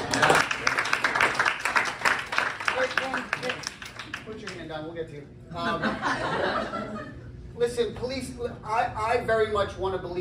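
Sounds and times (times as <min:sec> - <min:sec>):
round of applause: 0:00.0 - 0:04.7
speech: 0:04.7 - 0:10.2
laughter: 0:05.5 - 0:07.4.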